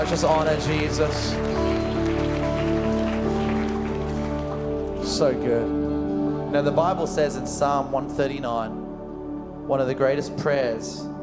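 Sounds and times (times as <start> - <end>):
speech: 0.0 - 1.8, 5.1 - 5.8, 6.5 - 8.8, 9.7 - 11.1
audience clapping in praise: 0.0 - 5.4.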